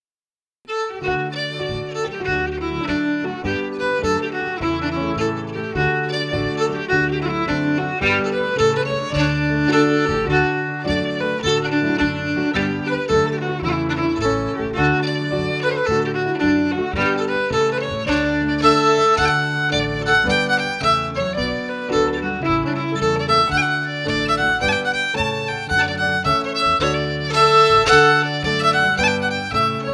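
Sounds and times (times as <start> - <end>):
fiddle: 0.7 - 29.9.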